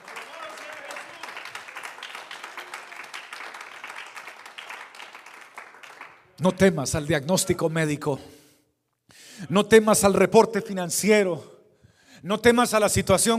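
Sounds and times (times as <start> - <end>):
audience applause: 0.0 - 6.4
speech: 6.4 - 8.4, 9.5 - 11.5, 12.2 - 13.3.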